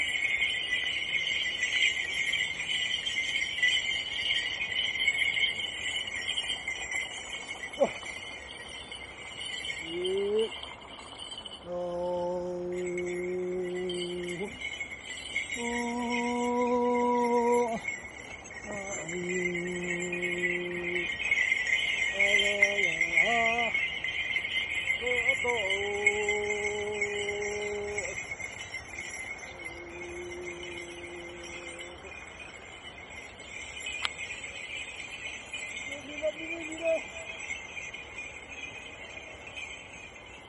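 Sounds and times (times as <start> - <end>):
steady high chirring of insects: 0.0 - 40.4
Tibetan man humming a slow wordless tune in the fields: 9.8 - 10.6, 11.6 - 14.7, 15.4 - 17.9, 18.6 - 21.2, 22.1 - 23.8, 25.0 - 28.3, 29.4 - 32.1.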